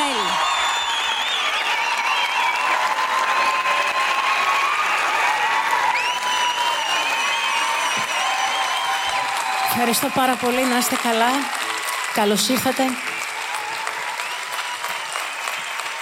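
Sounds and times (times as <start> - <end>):
warm applause: 0.0 - 16.0
speech: 9.8 - 11.6, 12.2 - 13.1.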